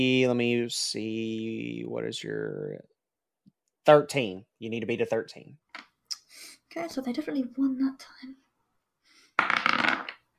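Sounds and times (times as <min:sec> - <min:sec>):
speech: 0:00.0 - 0:02.9, 0:03.9 - 0:05.6, 0:06.3 - 0:08.4, 0:09.4 - 0:10.0
dice falling off a table: 0:09.4 - 0:10.3.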